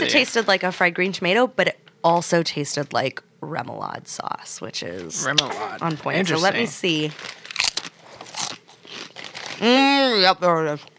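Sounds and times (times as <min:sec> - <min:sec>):
speech: 0:00.0 - 0:07.4, 0:09.6 - 0:10.9
crunching a fried chip: 0:07.1 - 0:09.7.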